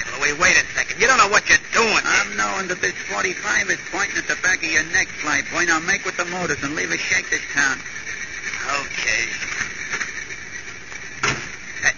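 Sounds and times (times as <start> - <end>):
wind: 0.0 - 11.9
speech: 0.3 - 8.1, 8.7 - 9.6
door opening and closing: 11.2 - 11.6.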